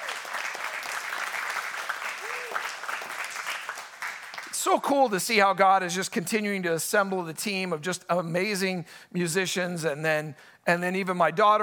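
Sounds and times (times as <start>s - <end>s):
audience round of applause: 0.0s - 4.6s
speech: 4.6s - 11.6s.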